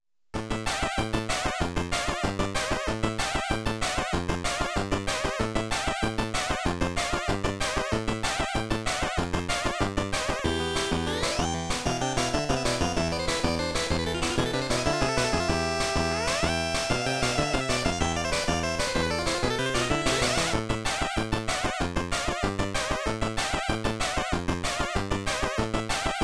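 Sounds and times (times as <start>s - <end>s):
boss level game music: 0.4s - 26.2s.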